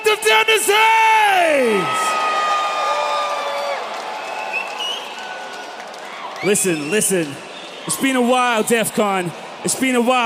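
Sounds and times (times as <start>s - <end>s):
crowd cheering: 0.0s - 10.2s
speech: 0.1s - 2.1s, 6.4s - 10.2s
crowd clapping: 2.1s - 9.3s.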